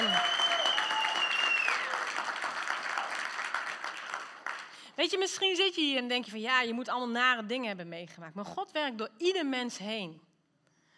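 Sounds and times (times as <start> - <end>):
audience clapping: 0.0 - 5.0
speech: 5.0 - 10.3.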